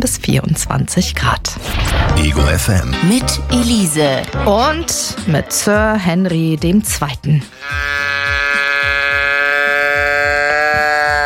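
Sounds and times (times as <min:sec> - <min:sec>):
speech: 0:00.0 - 0:08.2
goat-like bleating sound effect: 0:07.5 - 0:11.2.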